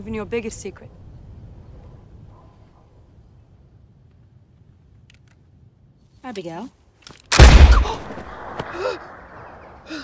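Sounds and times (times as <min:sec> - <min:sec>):
speech: 0:00.0 - 0:01.0, 0:06.3 - 0:07.2, 0:08.8 - 0:09.1
pellet gun gunshot in a film scene: 0:07.3 - 0:09.7.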